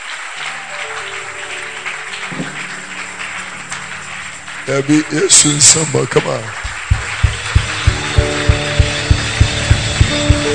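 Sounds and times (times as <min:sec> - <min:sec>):
crowd clapping: 0:00.0 - 0:10.5
faint sustained tones: 0:01.8 - 0:06.1
speech: 0:04.7 - 0:06.7.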